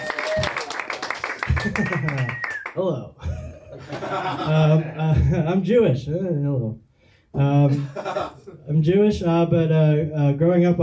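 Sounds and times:
audience clapping: 0.0s - 2.8s
laughter: 1.4s - 2.4s, 3.2s - 5.5s, 7.7s - 8.6s
speech: 1.6s - 10.8s.

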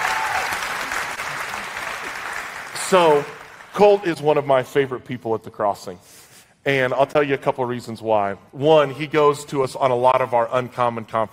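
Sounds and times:
audience applauding to welcome a guest: 0.0s - 3.8s
speech: 2.8s - 11.3s.

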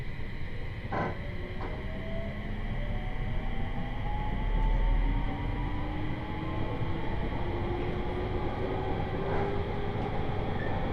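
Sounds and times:
Tōhoku Main Line 701 series four-car train running from Kitakami to Morioka: 0.0s - 10.9s
rising train motor whine: 1.4s - 9.1s.

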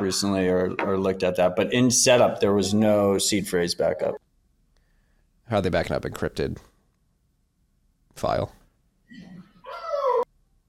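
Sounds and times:
speech: 0.1s - 4.2s, 5.5s - 6.7s, 8.2s - 9.3s
dog whining: 9.1s - 10.3s.

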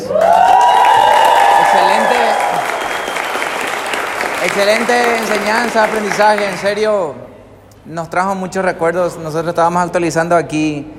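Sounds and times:
faint cheers: 0.0s - 5.6s
loud audience applause: 0.0s - 6.9s
speech: 4.5s - 10.9s.

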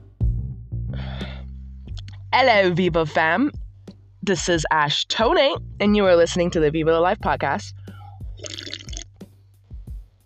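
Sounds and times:
speech: 2.4s - 3.6s, 4.2s - 7.8s
soft gulps: 7.9s - 9.1s
person sipping an energy drink: 8.4s - 9.1s.

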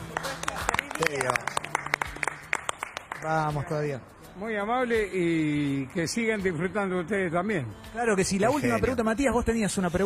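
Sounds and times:
family clapping: 0.0s - 3.7s
speech: 1.0s - 1.6s, 3.2s - 10.0s.

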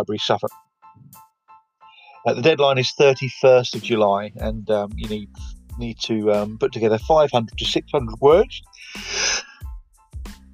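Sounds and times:
speech: 0.0s - 1.2s, 2.2s - 9.2s
person yawning: 8.9s - 9.6s.

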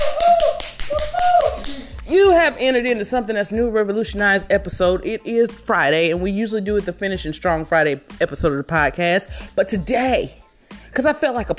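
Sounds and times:
clapping applause: 0.0s - 1.8s
speech: 2.1s - 11.5s.

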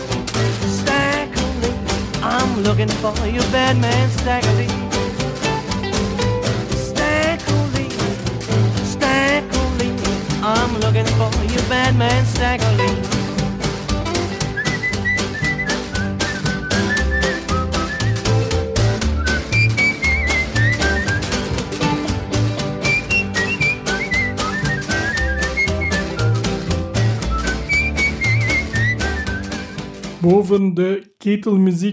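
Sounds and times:
blues band with thumping bass and percussion: 0.0s - 30.3s
speech: 2.7s - 5.0s, 10.5s - 13.2s, 30.2s - 31.9s
buzzy kazoo melody in a blues song: 14.3s - 22.1s, 22.8s - 29.9s.

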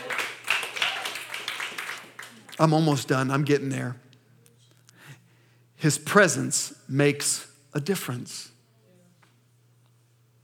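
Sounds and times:
audience clapping: 0.0s - 3.1s
speech: 2.6s - 4.0s, 5.8s - 8.6s.

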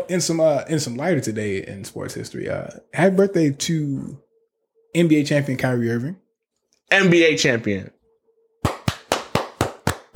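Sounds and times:
speech: 0.1s - 4.2s, 4.9s - 6.2s, 6.9s - 8.0s
applause sound effect: 8.6s - 10.1s.

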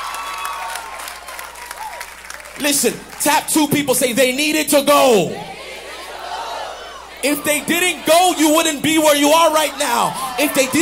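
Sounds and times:
audience clapping: 0.0s - 3.5s
speech: 2.6s - 5.6s, 7.2s - 10.8s.

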